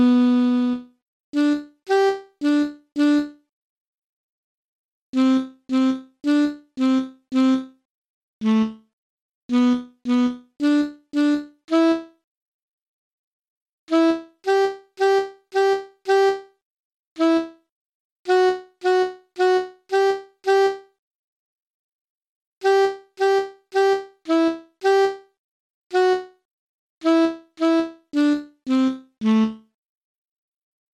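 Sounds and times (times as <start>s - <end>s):
alto saxophone: 0.0s - 3.4s, 5.2s - 7.7s, 9.5s - 12.2s, 13.9s - 16.5s, 17.2s - 17.6s, 18.3s - 20.9s, 22.6s - 25.2s, 25.9s - 26.4s, 27.0s - 29.6s.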